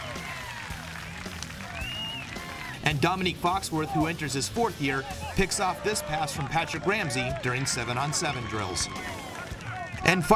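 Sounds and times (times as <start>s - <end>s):
scattered raised voices and shouts: 0.0s - 0.8s, 2.3s - 2.8s, 5.0s - 10.3s
crowd cheering and clapping at a football practice: 0.0s - 10.3s
speech: 2.9s - 9.2s, 10.0s - 10.3s.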